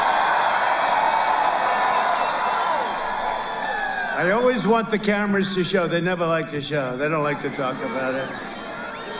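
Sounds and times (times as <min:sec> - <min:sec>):
large rally crowd cheering: 0:00.0 - 0:04.9, 0:07.2 - 0:09.1
speech: 0:04.2 - 0:08.5.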